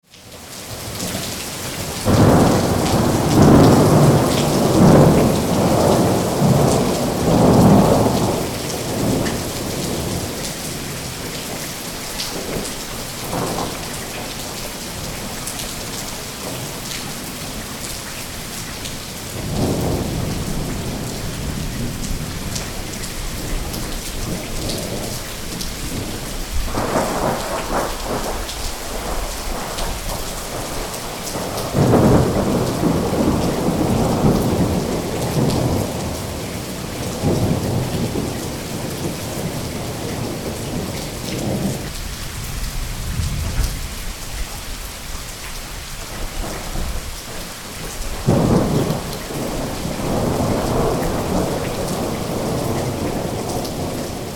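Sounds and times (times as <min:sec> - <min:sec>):
rain: 0:00.0 - 0:54.3
thunderstorm: 0:02.0 - 0:11.0, 0:19.4 - 0:44.1, 0:48.1 - 0:54.3.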